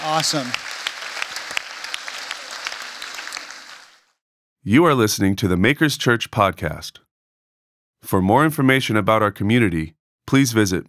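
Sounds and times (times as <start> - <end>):
speech: 0.0 - 0.7, 4.6 - 7.0, 8.0 - 10.8
applause: 0.0 - 4.2.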